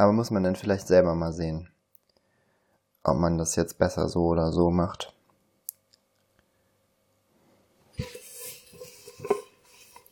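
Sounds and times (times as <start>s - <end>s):
speech: 0.0s - 1.7s, 3.0s - 5.2s
large pot clattering while being dried with dishes: 8.0s - 10.0s.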